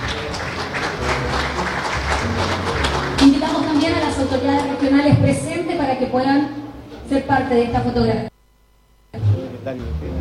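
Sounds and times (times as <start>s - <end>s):
audience applause: 0.0s - 5.0s
speech: 3.2s - 8.3s, 9.7s - 10.2s.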